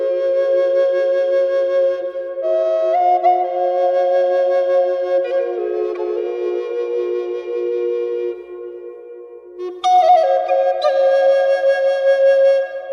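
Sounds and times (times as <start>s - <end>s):
F-sharp drone flute with reverb: 0.0s - 12.9s.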